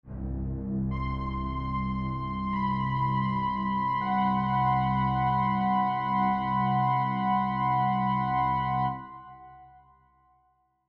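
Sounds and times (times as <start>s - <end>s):
haunting music: 0.1s - 9.8s.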